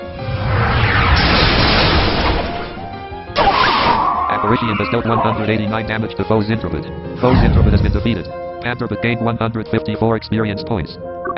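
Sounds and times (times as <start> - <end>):
video game attack sound effect for the move Nightstick: 0.4 - 4.0, 7.2 - 8.3
speech: 4.5 - 11.3.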